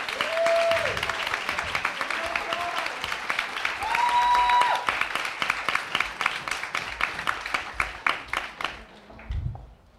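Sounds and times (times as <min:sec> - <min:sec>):
audience whooping at Strand bookstore: 0:00.0 - 0:02.9, 0:03.7 - 0:05.0
audience applause greeting a panel of beauty writers at Strand bookstore: 0:00.0 - 0:09.3.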